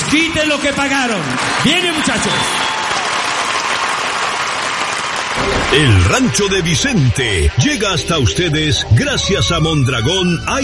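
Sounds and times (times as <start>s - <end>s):
crowd applause at a live music show: 0.0s - 8.4s
speech: 0.2s - 2.7s, 5.4s - 10.6s.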